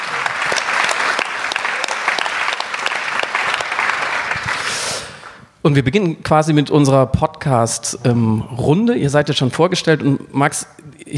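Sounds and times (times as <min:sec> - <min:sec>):
audience applause: 0:00.0 - 0:05.4
speech: 0:05.7 - 0:11.1.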